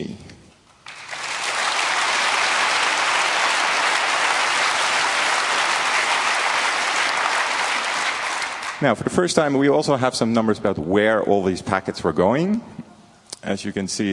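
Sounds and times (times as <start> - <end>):
audience applause: 0.8 - 8.8
speech: 8.8 - 12.8, 13.5 - 14.1.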